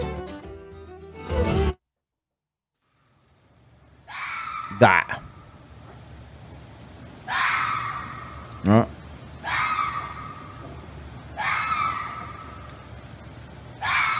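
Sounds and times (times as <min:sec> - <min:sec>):
foxes screaming while mating: 0:04.0 - 0:05.6, 0:07.2 - 0:08.7, 0:09.3 - 0:13.0, 0:13.7 - 0:14.1
speech: 0:04.8 - 0:05.2, 0:08.7 - 0:08.9.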